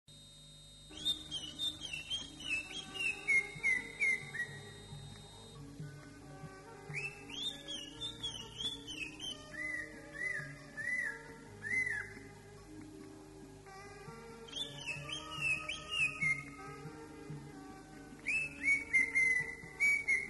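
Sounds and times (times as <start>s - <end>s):
greater green leafbird song: 0.9s - 5.6s, 6.9s - 12.3s, 14.4s - 16.8s, 17.8s - 20.2s.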